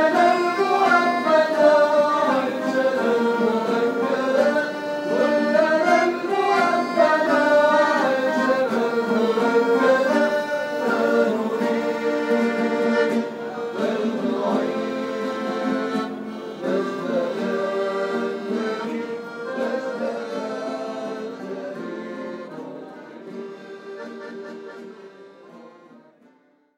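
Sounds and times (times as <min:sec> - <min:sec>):
group playing with accordion: 0:00.0 - 0:26.4.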